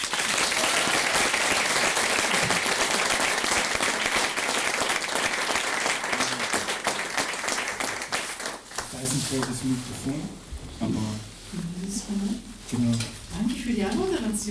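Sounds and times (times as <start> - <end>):
big round of applause: 0.0 - 9.8
speech: 9.3 - 14.4.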